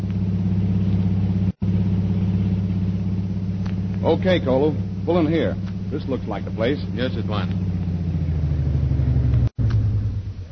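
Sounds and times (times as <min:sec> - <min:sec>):
powerful car engine driving through streets: 0:00.0 - 0:10.5
speech: 0:04.1 - 0:07.7.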